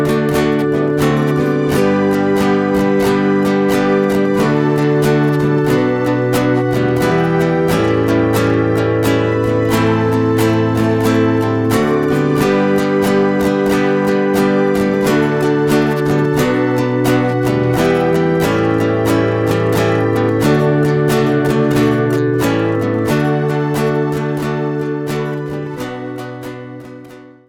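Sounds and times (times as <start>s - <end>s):
guitar playing: 0.0s - 27.4s.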